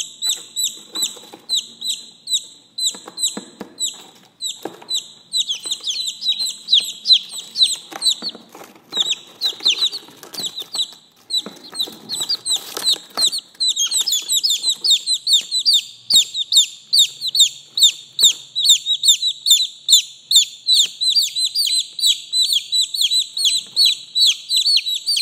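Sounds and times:
chicks peeping: 0.0 - 25.2
scratching and clicks: 3.0 - 15.6.

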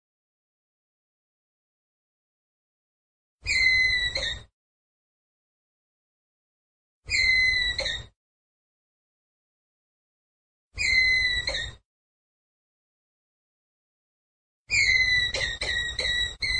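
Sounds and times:
ground squirrel whistled call: 3.4 - 4.5, 7.1 - 8.1, 10.8 - 11.8, 14.7 - 16.5.

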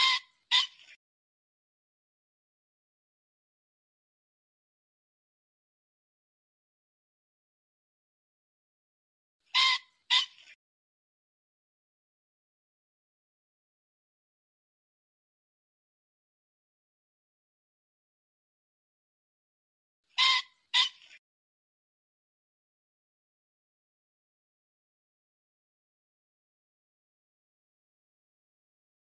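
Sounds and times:
pheasant squawking: 0.0 - 1.0, 9.5 - 10.6, 20.2 - 21.2.

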